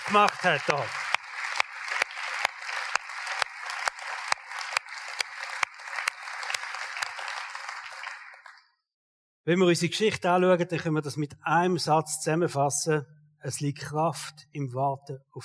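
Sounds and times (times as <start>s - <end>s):
audience applause: 0.0s - 8.6s
speech: 0.1s - 1.0s, 9.5s - 15.4s.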